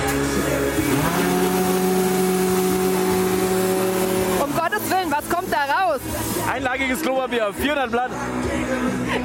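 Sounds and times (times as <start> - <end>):
converted leaf blower confetti machine roaring: 0.1 - 6.3
speech: 6.9 - 9.2.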